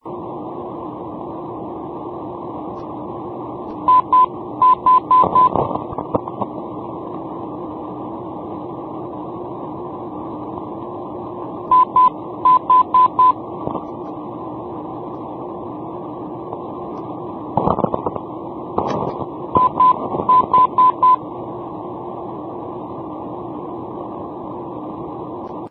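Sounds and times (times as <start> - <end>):
non-directional beacon signal: 3.7 - 5.6, 11.7 - 13.4, 18.9 - 21.2.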